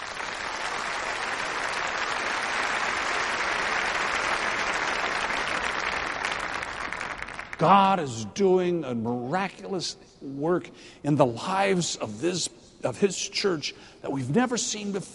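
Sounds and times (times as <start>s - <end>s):
audience applause: 0.0s - 7.7s
speech: 7.6s - 15.1s.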